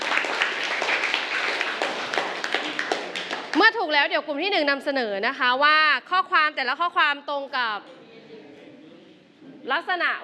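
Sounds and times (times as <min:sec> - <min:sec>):
classroom clapping: 0:00.0 - 0:03.8
speech: 0:03.8 - 0:08.0, 0:09.6 - 0:10.2.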